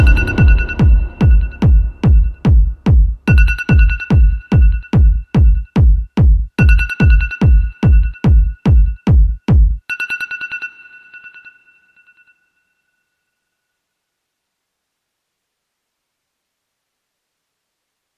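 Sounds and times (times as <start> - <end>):
phone alarm clock techno remix: 0.0 - 11.2.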